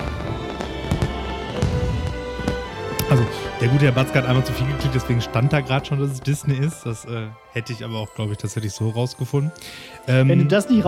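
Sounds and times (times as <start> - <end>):
fireworks in a Disney intro: 0.0 - 3.4
speech: 3.1 - 10.8.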